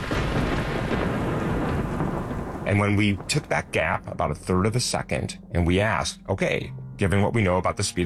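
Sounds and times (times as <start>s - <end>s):
missile strike explosion rumble: 0.0s - 4.4s
speech: 2.7s - 8.0s.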